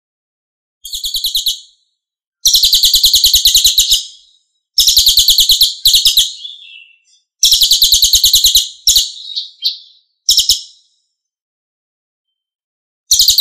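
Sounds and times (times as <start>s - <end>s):
Lesser Racket-tailed Drongo song in tembakan style: 0.8s - 11.2s, 13.1s - 13.4s.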